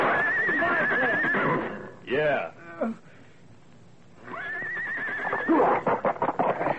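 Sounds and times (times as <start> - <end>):
horse neighing: 0.1 - 1.9, 4.2 - 6.6
speech: 2.1 - 3.1.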